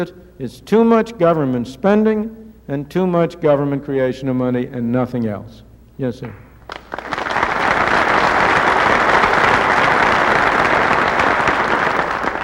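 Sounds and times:
speech: 0:00.0 - 0:06.9
audience clapping: 0:06.6 - 0:12.4.

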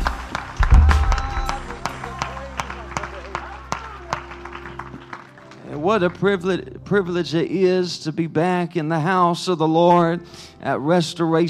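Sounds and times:
audience clapping hands: 0:00.0 - 0:06.6
speech: 0:05.8 - 0:11.4.

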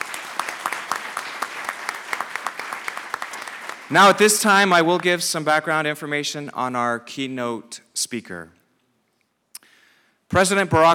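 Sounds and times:
audience applause: 0:00.0 - 0:05.1
speech: 0:03.9 - 0:08.6, 0:10.3 - 0:10.9.

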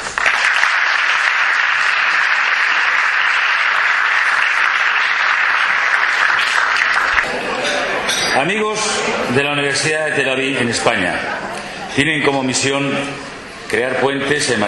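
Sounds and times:
audience applause: 0:00.0 - 0:07.6
speech: 0:08.4 - 0:14.6.

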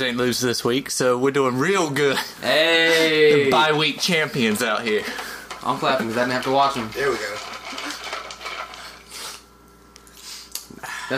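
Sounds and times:
speech: 0:00.0 - 0:07.4
cup rumbling and rattling: 0:04.4 - 0:09.1.

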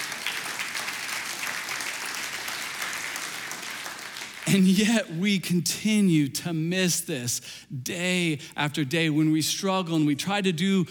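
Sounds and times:
audience cheering and applauding: 0:00.0 - 0:04.6
speech: 0:04.5 - 0:10.8.

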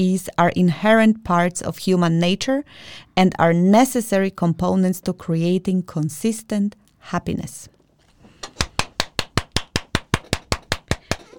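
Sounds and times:
speech: 0:00.0 - 0:07.8
hands clapping: 0:08.4 - 0:11.3.

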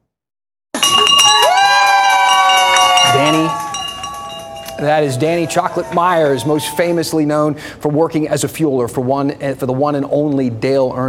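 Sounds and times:
celebratory bell ring after final chemo: 0:00.8 - 0:07.4
speech: 0:04.8 - 0:11.0.

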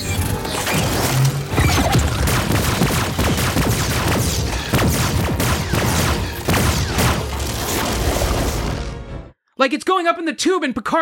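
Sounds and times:
phaser shots repeatedly missing target: 0:00.4 - 0:08.5
speech: 0:09.6 - 0:10.9.

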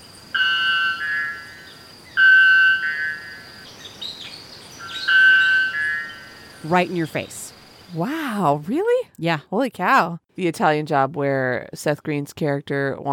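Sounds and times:
male bellbird's extremely loud call: 0:00.3 - 0:07.4
speech: 0:06.6 - 0:13.1.

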